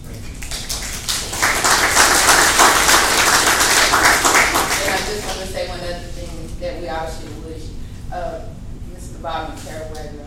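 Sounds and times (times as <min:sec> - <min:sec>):
audience applause: 0:00.3 - 0:05.4.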